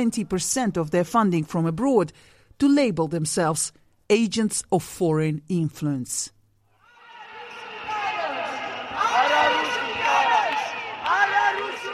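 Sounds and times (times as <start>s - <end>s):
speech: 0.0s - 6.4s
huge protest crowd chanting outside parliament: 6.8s - 11.9s.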